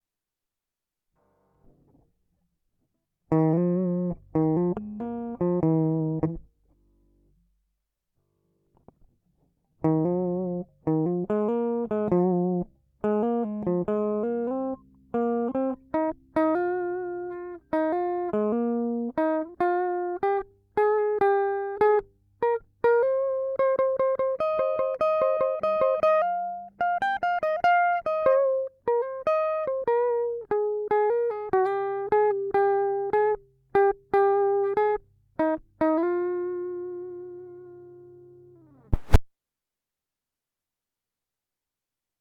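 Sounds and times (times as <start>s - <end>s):
solo guitar: 3.3s - 7.6s, 8.6s - 39.3s.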